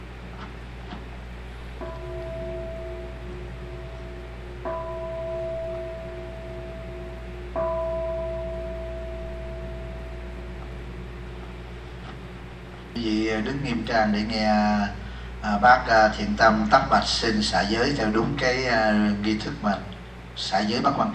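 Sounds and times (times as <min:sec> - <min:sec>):
temple bell strikes: 0:01.8 - 0:11.8
speech: 0:13.0 - 0:21.1.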